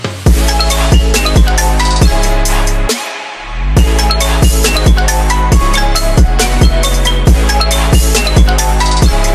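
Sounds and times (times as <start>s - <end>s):
Oppo Reno phone ringtone: 0.3s - 2.6s, 3.8s - 9.2s.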